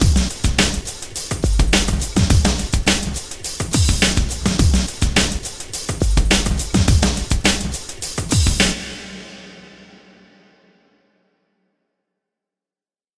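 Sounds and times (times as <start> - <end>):
breakbeat loop track: 0.0 - 9.0.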